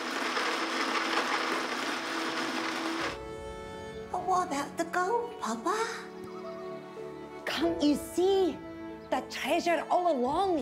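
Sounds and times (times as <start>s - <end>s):
blender whirring: 0.0s - 3.2s
speech: 4.3s - 6.1s, 7.6s - 10.6s.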